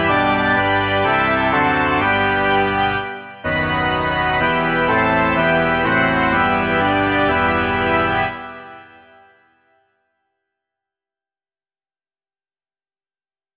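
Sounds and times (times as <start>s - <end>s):
organ: 0.0s - 9.4s.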